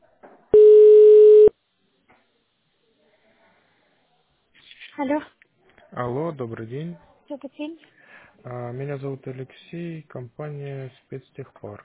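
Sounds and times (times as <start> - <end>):
telephone line tone while a call connects: 0.6 - 1.5
speech: 5.0 - 5.4, 6.0 - 11.8.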